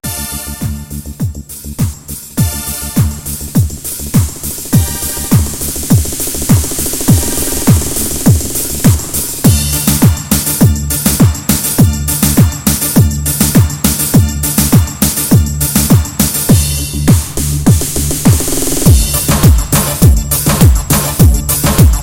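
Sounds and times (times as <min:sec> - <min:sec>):
halay folk dance music: 0:00.0 - 0:22.0.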